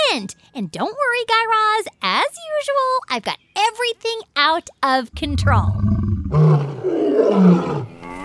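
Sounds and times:
speech: 0.1s - 7.9s
escaped zoo lion roaring: 5.2s - 8.2s.

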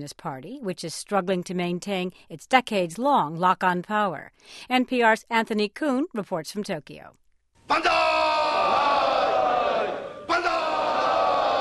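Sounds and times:
speech: 0.0s - 8.1s
party lawmakers cheering and shouting: 7.7s - 11.6s.

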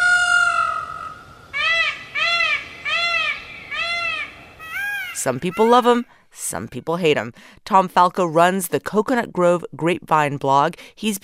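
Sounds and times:
peacock screeching: 0.0s - 6.0s
speech: 5.2s - 11.2s.

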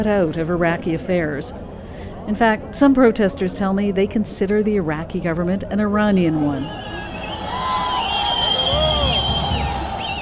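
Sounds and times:
speech: 0.0s - 1.7s, 2.3s - 7.0s
crowd cheering: 6.3s - 10.2s.

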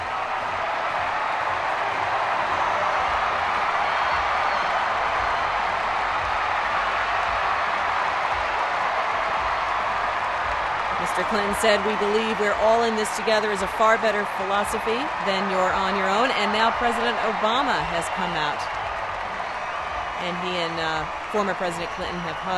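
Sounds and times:
large crowd applauding and cheering: 0.0s - 22.5s
speech: 11.3s - 18.8s, 20.2s - 22.5s.

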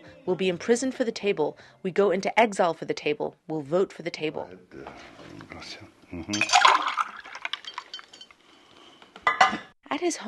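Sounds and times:
speech: 0.2s - 7.0s, 10.0s - 10.2s
glass clinks: 6.3s - 6.8s, 7.4s - 8.4s, 9.2s - 9.7s
juice pouring into a glass: 6.4s - 8.4s.

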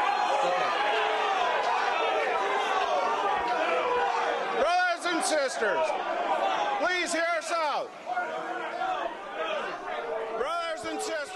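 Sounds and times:
angry crowd hooting and hollering: 0.0s - 11.3s
speech: 5.2s - 6.2s, 6.8s - 8.4s.

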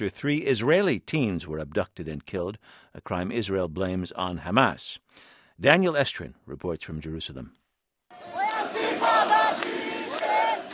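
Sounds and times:
speech: 0.0s - 7.6s
crowd of Palestinians chanting at a funeral of a 16-year-old boy: 8.1s - 10.7s.

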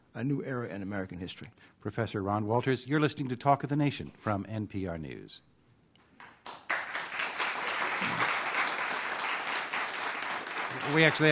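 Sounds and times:
speech: 0.2s - 5.5s, 10.8s - 11.3s
audience applause: 6.4s - 11.3s.

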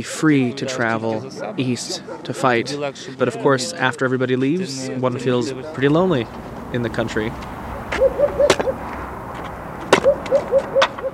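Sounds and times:
speech: 0.0s - 7.6s
man chopping logs into kindling: 7.3s - 11.1s.

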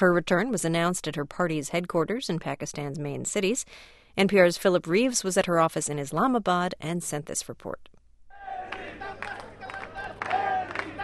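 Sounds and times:
speech: 0.0s - 8.0s
small crowd of supporters cheering and shouting: 8.4s - 11.0s
clapping: 8.7s - 11.0s.

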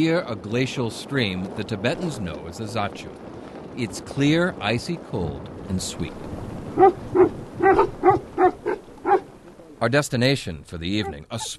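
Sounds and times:
speech: 0.0s - 7.9s, 9.8s - 11.5s
Tibetan mastiffs barking: 6.8s - 9.3s.

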